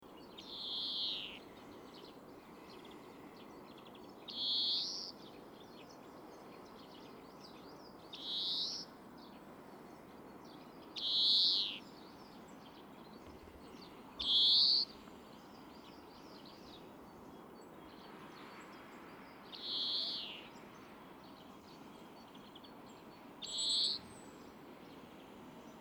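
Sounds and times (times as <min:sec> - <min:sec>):
European greenfinch trilled calls and nasal wheeze: 0:00.4 - 0:06.0, 0:07.8 - 0:08.9, 0:10.8 - 0:12.3, 0:13.7 - 0:16.9, 0:19.2 - 0:20.6, 0:23.4 - 0:25.8.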